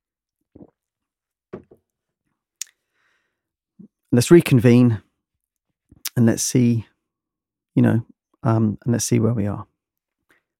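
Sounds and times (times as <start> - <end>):
person gulping water: 0.5 - 0.9
speech: 4.1 - 5.1, 6.2 - 6.9, 7.8 - 9.7.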